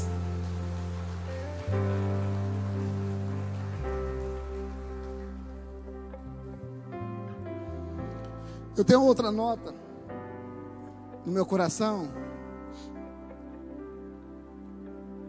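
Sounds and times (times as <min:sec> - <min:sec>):
audience applause: 0:00.0 - 0:06.5
sustained keyboard chords: 0:00.0 - 0:15.2
speech: 0:08.8 - 0:09.8, 0:11.2 - 0:12.2.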